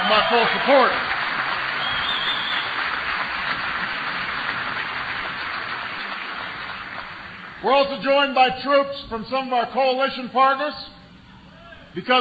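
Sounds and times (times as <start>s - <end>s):
audience applause: 0.0s - 7.6s
speech: 0.1s - 1.1s, 7.6s - 10.9s, 12.0s - 12.2s.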